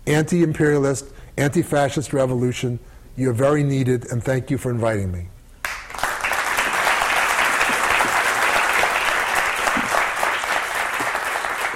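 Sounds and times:
speech: 0.1s - 5.3s
audience clapping: 5.6s - 11.7s.

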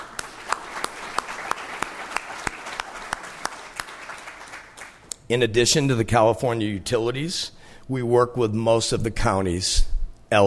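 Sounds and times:
audience applause: 0.0s - 5.0s
speech: 5.3s - 10.4s.

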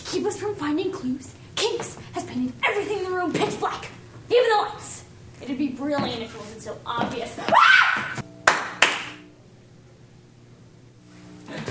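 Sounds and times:
low steady hum: 0.0s - 11.6s
speech: 0.1s - 8.2s
sharp hand claps: 8.4s - 9.2s.

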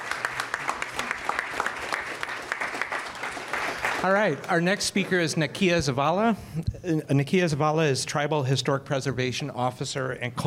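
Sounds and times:
audience applause for a speaker at a talk event: 0.0s - 5.5s
speech: 4.0s - 10.4s.

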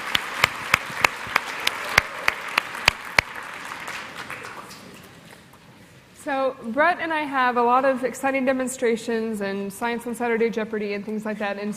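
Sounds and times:
audience applause: 0.0s - 5.3s
speech: 6.6s - 11.7s.

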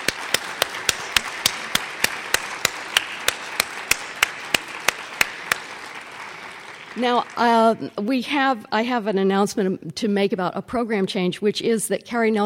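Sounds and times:
audience applause: 0.0s - 7.9s
speech: 7.0s - 12.4s.

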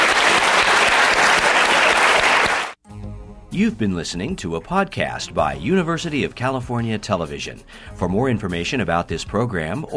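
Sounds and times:
audience applause: 0.0s - 2.8s
speech: 3.5s - 9.9s.

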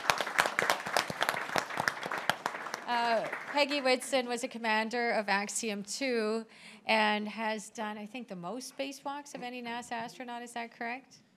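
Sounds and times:
audience applause: 0.0s - 4.1s
speech: 2.9s - 11.2s.

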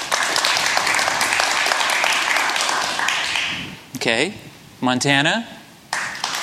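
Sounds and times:
audience applause: 0.0s - 3.7s, 5.9s - 6.4s
speech: 4.0s - 5.6s.

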